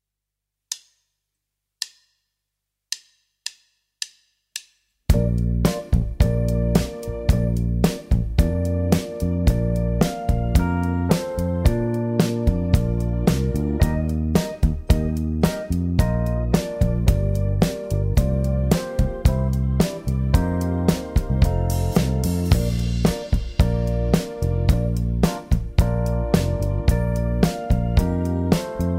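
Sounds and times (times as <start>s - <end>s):
Christmas song: 5.2s - 28.9s.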